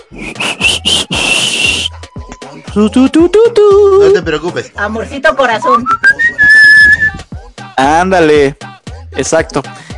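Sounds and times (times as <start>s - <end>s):
person attempting to whistle: 0.1s - 2.0s, 5.8s - 7.2s
speech: 2.8s - 6.4s, 7.8s - 8.6s, 9.2s - 9.8s.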